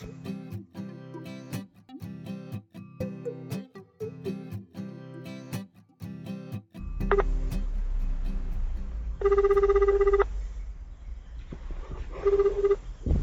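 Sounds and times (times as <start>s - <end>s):
melodic telephone ringtone at the start of a recorded phone call: 0.8s - 1.6s, 3.0s - 5.5s
loud sustained electronic beep: 6.8s - 10.5s, 12.2s - 13.0s.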